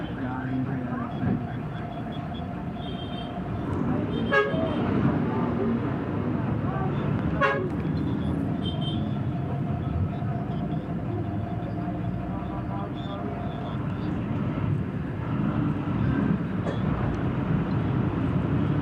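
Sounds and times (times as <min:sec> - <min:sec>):
street traffic: 0:00.0 - 0:18.8
car horns: 0:01.8 - 0:05.0, 0:07.3 - 0:09.4.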